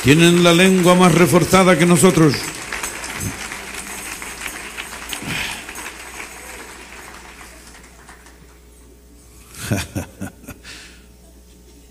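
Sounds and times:
speech: 0.0s - 2.6s, 9.7s - 10.4s
audience applause: 0.0s - 8.9s
laughter: 9.4s - 10.9s.

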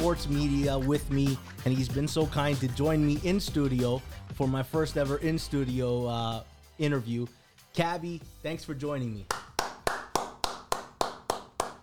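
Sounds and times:
speech: 0.1s - 9.4s
crowd clapping: 9.3s - 11.8s.

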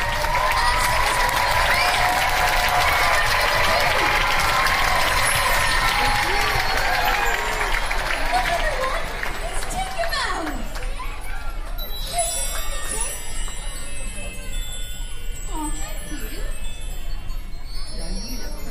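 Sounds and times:
theatre audience clapping and stamping feet: 0.0s - 11.0s
faint crowd voices: 0.0s - 18.6s.

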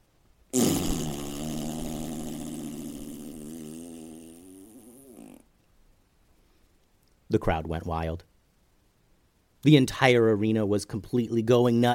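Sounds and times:
bull farting loudly: 0.6s - 5.5s
speech: 7.3s - 8.3s, 9.6s - 11.9s.

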